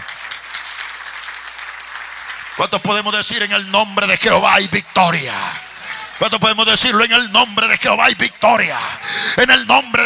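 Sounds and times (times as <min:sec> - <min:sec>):
audience applauding: 0:00.0 - 0:06.2
speech: 0:02.6 - 0:05.6, 0:06.2 - 0:10.0.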